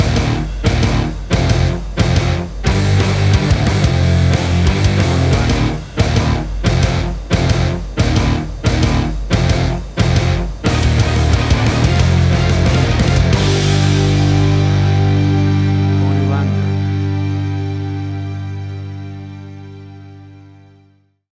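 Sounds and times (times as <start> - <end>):
action punk heavy rock epic music: 0.0 - 19.9.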